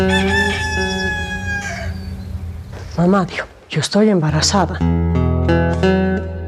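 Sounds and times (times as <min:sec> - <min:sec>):
roosters crowing at dawn: 0:00.0 - 0:02.7
speech: 0:03.0 - 0:06.3.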